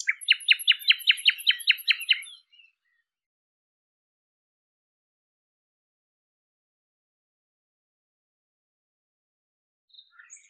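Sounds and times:
bird trilling: 0.1 - 2.3.

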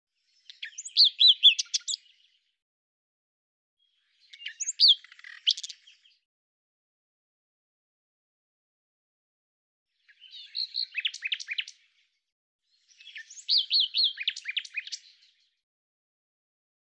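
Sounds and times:
common nightingale song: 0.2 - 2.6, 3.8 - 6.2, 10.0 - 12.1, 12.7 - 15.6.

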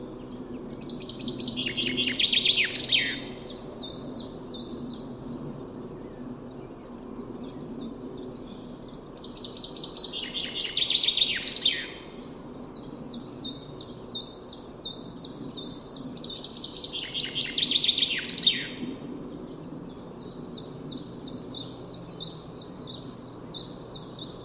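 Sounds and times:
common chaffinch singing: 0.0 - 24.4.

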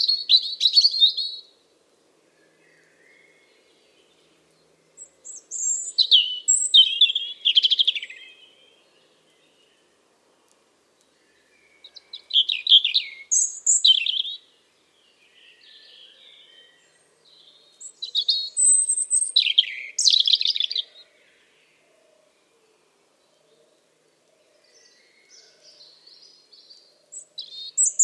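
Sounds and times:
bird warbling song: 0.0 - 1.5, 5.0 - 9.8, 11.3 - 22.6, 24.5 - 28.0.

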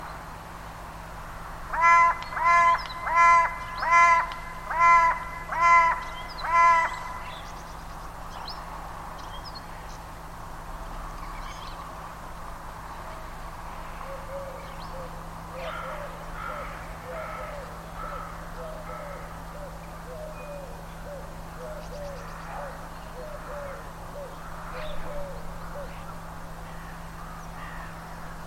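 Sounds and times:
bird calls: 1.8 - 8.6, 14.0 - 28.4.

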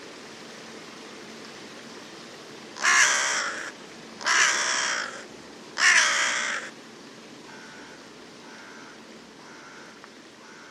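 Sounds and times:
background hiss: 0.0 - 10.6
bird uttering long hoarse caws: 2.8 - 6.8, 7.4 - 10.6.

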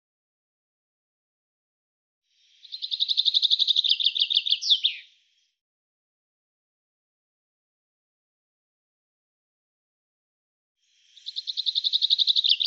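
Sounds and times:
bird song in rapid high trilled phrases: 2.5 - 5.5, 10.9 - 12.6.

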